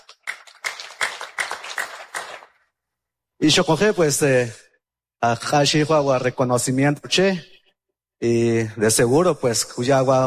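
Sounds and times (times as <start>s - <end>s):
applause: 0.0s - 2.7s
speech: 3.4s - 7.5s, 8.2s - 10.2s.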